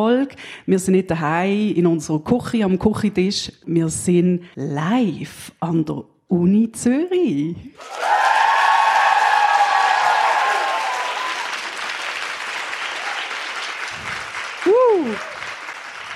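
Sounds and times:
speech: 0:00.0 - 0:08.5
spontaneous audience applause: 0:07.8 - 0:16.1.

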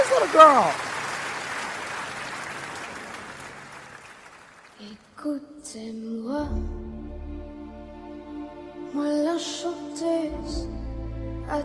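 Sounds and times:
live audience clapping: 0:00.0 - 0:05.0
speech: 0:00.1 - 0:00.9, 0:04.8 - 0:06.9, 0:08.9 - 0:10.8, 0:11.5 - 0:11.6.

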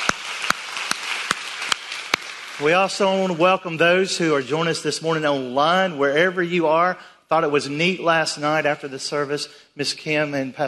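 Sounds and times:
sharp claps: 0:00.0 - 0:03.2
church congregation applause welcoming its home campus in Whiteville, North Carolina: 0:00.0 - 0:03.5
speech: 0:02.6 - 0:10.6.

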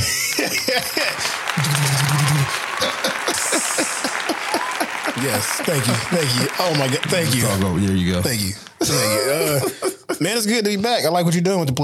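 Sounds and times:
scattered voices and cheers: 0:00.0 - 0:08.3
crowd applauding: 0:00.0 - 0:09.6
laughter: 0:00.0 - 0:10.5
speech: 0:00.7 - 0:11.8.

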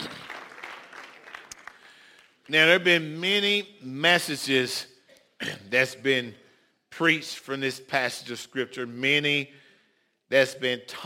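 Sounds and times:
audience clapping: 0:00.0 - 0:02.5
speech: 0:02.5 - 0:09.6, 0:10.3 - 0:11.0.

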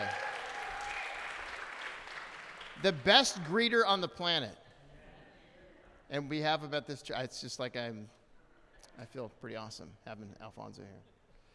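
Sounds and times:
audience clapping: 0:00.0 - 0:03.8
speech: 0:02.8 - 0:04.6, 0:06.1 - 0:08.2, 0:08.9 - 0:11.1.

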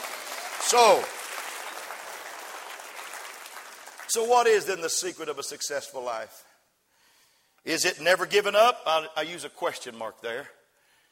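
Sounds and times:
audience clapping hands: 0:00.0 - 0:05.2
speech: 0:00.7 - 0:01.2, 0:04.1 - 0:06.5, 0:07.6 - 0:10.6.

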